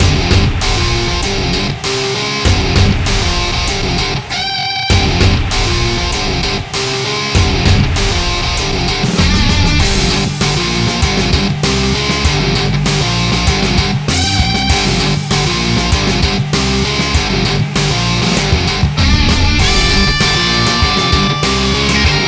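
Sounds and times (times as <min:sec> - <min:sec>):
background music: 0:00.0 - 0:22.2.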